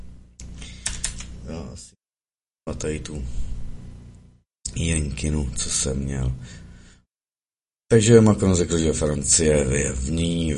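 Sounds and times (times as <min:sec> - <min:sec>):
typing on a computer keyboard: 0:00.6 - 0:01.3
speech: 0:01.8 - 0:02.0, 0:02.6 - 0:03.5, 0:04.8 - 0:06.6, 0:07.9 - 0:10.5.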